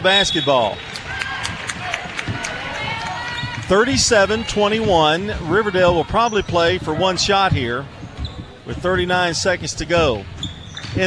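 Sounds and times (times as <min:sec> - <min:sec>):
speech: 0:00.0 - 0:00.9, 0:03.7 - 0:08.0, 0:08.7 - 0:10.3
crowd roar: 0:00.0 - 0:06.2
basketball bouncing on the court during a game: 0:01.0 - 0:11.0.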